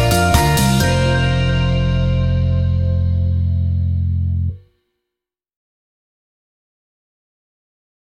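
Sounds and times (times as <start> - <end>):
waltz music: 0.0 - 4.5.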